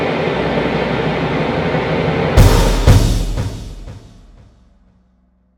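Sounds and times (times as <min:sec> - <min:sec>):
trills: 0:00.1 - 0:04.3.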